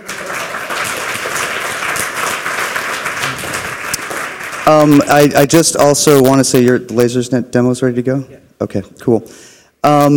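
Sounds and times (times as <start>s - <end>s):
audience applause: 0.0s - 5.3s
speech: 4.7s - 10.1s.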